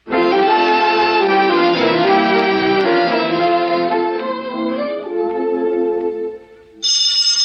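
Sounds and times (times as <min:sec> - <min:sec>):
orchestral-style music: 0:00.0 - 0:06.8
loud bright telephone bell ringing: 0:06.8 - 0:07.4.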